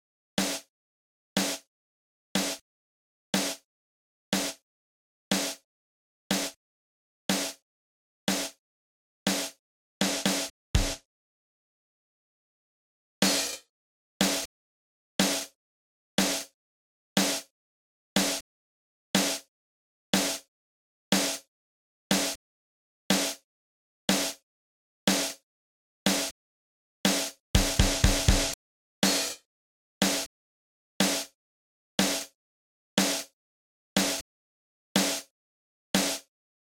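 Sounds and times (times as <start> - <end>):
drums: 0.4 - 0.7, 1.4 - 1.7, 2.4 - 2.6, 3.4 - 3.6, 4.4 - 4.6, 5.3 - 5.6, 6.3 - 6.6, 7.3 - 7.6, 8.3 - 8.6, 9.3 - 11.1, 13.2 - 14.5, 15.2 - 15.6, 16.2 - 16.5, 17.2 - 17.5, 18.2 - 18.4, 19.2 - 19.5, 20.2 - 20.4, 21.1 - 21.4, 22.1 - 22.4, 23.1 - 23.4, 24.1 - 24.4, 25.1 - 25.4, 26.1 - 26.3, 27.1 - 30.3, 31.0 - 31.4, 32.0 - 32.4, 33.0 - 33.4, 34.0 - 34.2, 35.0 - 35.3, 36.0 - 36.3.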